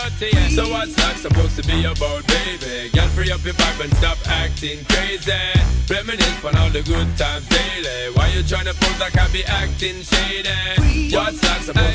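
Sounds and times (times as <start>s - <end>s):
club music: 0.0s - 11.9s.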